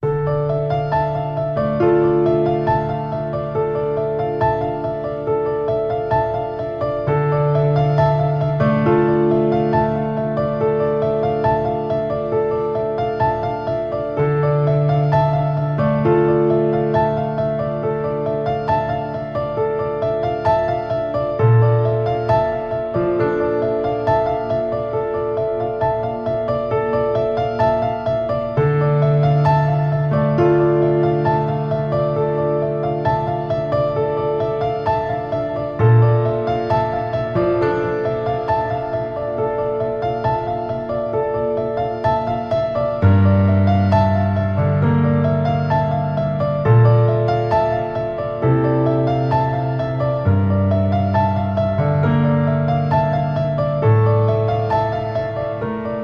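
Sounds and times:
piano: 0.0s - 56.0s.

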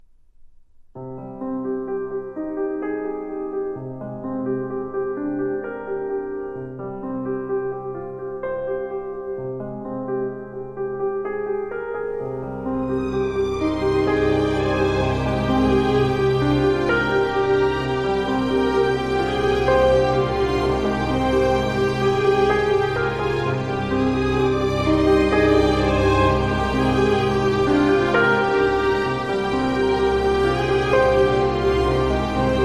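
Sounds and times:
piano and strings: 1.0s - 32.6s.

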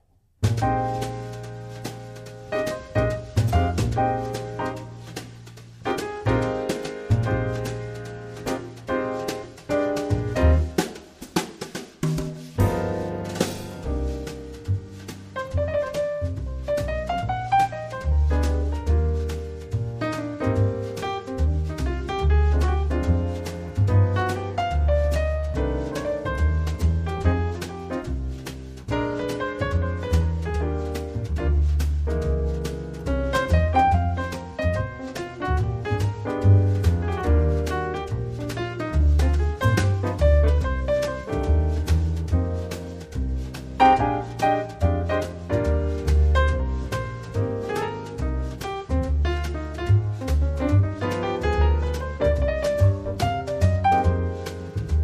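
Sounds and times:
jazz music: 0.4s - 55.0s.

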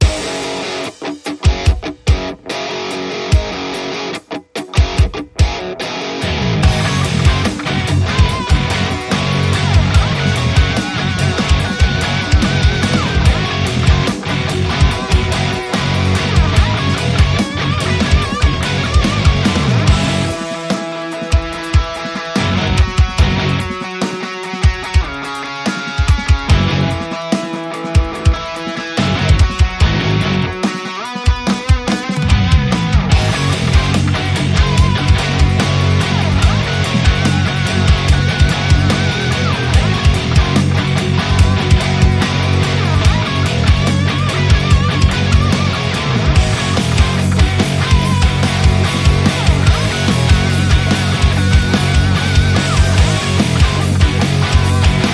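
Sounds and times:
funk rock music: 0.0s - 55.1s.

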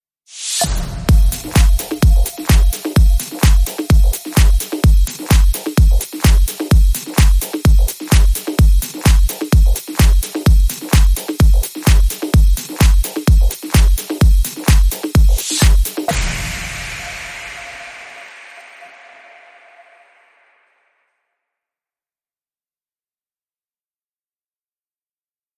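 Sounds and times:
music beat: 0.5s - 20.2s.

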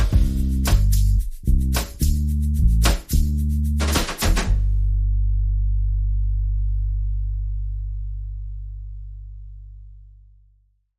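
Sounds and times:
drums: 0.0s - 4.6s
bass: 0.0s - 10.9s.

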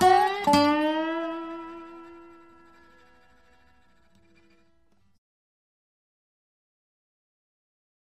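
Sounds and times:
Delta blues duet: 0.0s - 4.6s.

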